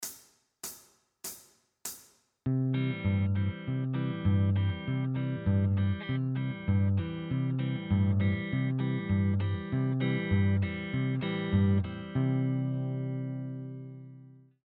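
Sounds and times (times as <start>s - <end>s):
backing track: 2.5s - 13.8s.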